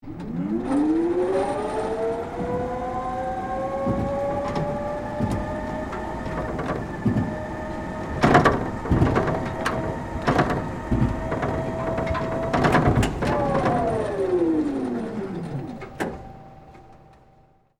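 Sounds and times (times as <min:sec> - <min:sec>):
industrial machine operating high and low, on-board perspective: 0:00.0 - 0:17.3.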